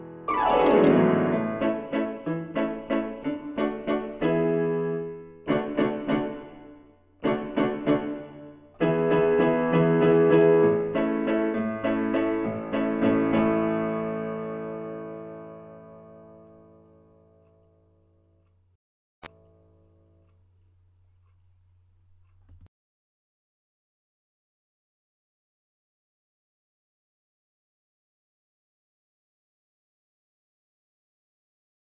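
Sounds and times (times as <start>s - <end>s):
solo piano: 0.0s - 17.3s.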